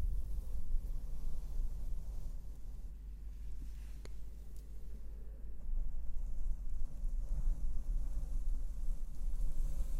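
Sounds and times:
slow brushing and blowing across a microphone: 0.0 - 5.0, 5.8 - 9.9.

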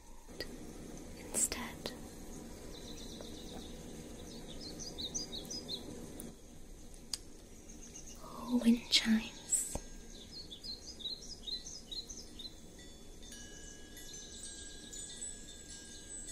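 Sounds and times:
bird sounds: 0.0 - 16.3
speech: 1.4 - 2.0, 8.5 - 9.4.

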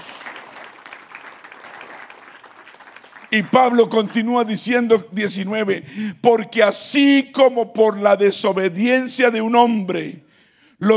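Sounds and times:
audience applause: 0.0 - 4.7
speech: 3.3 - 10.9.

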